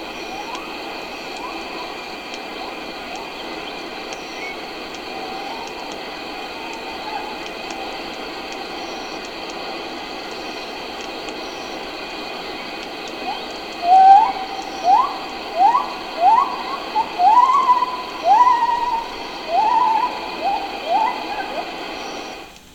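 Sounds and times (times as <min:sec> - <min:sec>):
male Northern race Hylobates lar gibbon calling in Thailand: 0:13.2 - 0:22.4.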